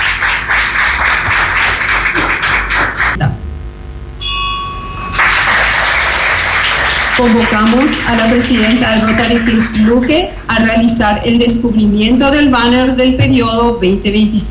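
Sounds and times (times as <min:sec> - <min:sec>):
audience applause: 0:00.0 - 0:03.2, 0:05.2 - 0:10.3
thin high ringing tone: 0:03.3 - 0:07.5
speech: 0:07.2 - 0:14.4.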